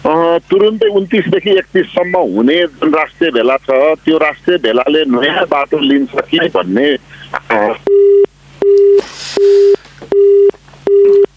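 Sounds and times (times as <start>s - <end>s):
speech: 0.4s - 11.2s
telephone busy tone after a phone interview line is cut off: 7.9s - 11.3s.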